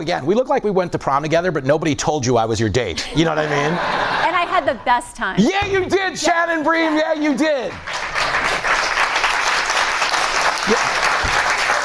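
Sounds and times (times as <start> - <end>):
speech: 0.0 - 8.1
laughter: 3.0 - 4.8
studio audience applause: 6.6 - 11.8.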